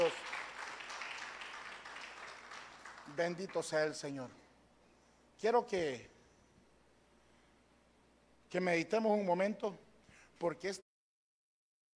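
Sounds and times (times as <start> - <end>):
audience applause: 0.0 - 3.7
speech: 3.2 - 4.4, 5.4 - 6.2, 8.5 - 9.8, 10.4 - 10.8.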